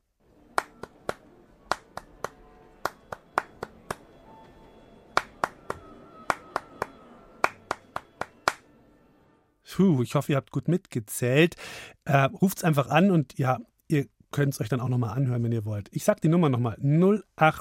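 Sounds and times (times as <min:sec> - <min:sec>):
rhythmic hand clapping pattern: 0:00.5 - 0:04.2, 0:05.1 - 0:08.7
speech: 0:09.8 - 0:17.5.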